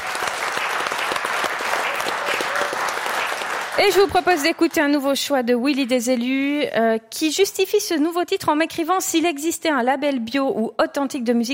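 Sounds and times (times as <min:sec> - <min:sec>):
audience applause: 0:00.0 - 0:04.8
speech: 0:03.8 - 0:11.5.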